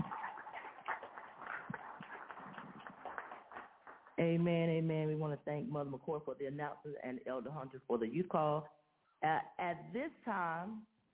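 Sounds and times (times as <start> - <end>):
audience applause: 0.0 - 4.2
speech: 4.2 - 10.9.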